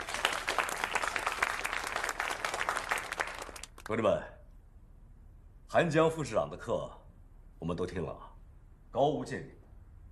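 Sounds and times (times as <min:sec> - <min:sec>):
applause: 0:00.0 - 0:04.0
speech: 0:03.9 - 0:04.4, 0:05.7 - 0:07.0, 0:07.6 - 0:08.3, 0:08.9 - 0:09.6.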